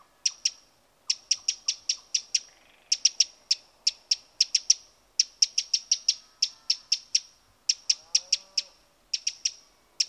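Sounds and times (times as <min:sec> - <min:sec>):
Eurasian wren high sharp notes and trills: 0:00.0 - 0:10.0.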